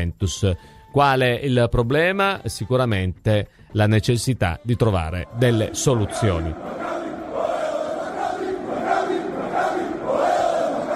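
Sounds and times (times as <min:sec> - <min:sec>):
speech: 0:00.0 - 0:06.9
football fans chanting in a stadium: 0:05.4 - 0:10.9.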